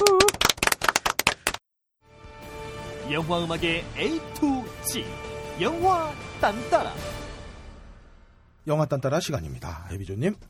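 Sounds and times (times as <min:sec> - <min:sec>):
audience applause: 0:00.0 - 0:01.6
speech: 0:03.1 - 0:07.2, 0:08.7 - 0:10.4.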